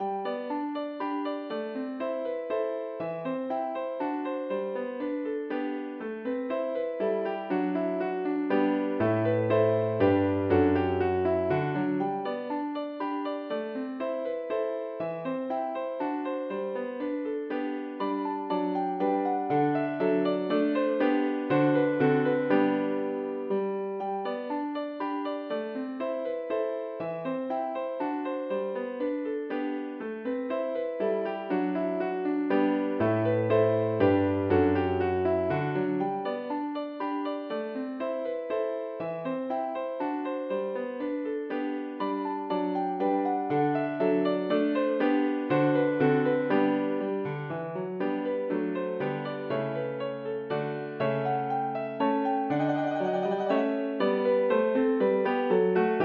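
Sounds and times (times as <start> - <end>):
piano minuet: 0.0 - 56.0.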